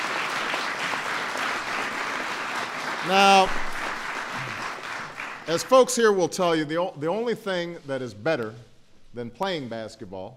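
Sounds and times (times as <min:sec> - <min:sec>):
crowd applause: 0:00.0 - 0:05.9
speech: 0:03.0 - 0:03.6, 0:05.5 - 0:10.3.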